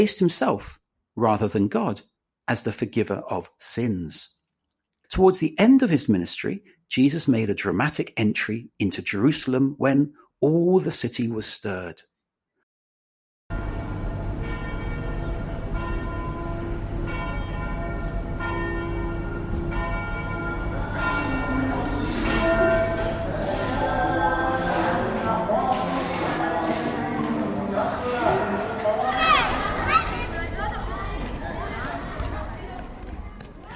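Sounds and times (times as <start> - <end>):
speech: 0.0 - 4.4, 5.1 - 12.1
soundscape of the Old City of Jerusalem: 13.5 - 33.7.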